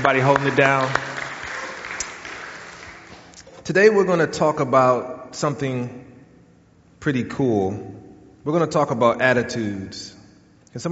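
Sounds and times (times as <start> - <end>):
speech: 0.0 - 1.0, 3.7 - 6.1, 7.0 - 10.1
audience applause: 0.0 - 3.3.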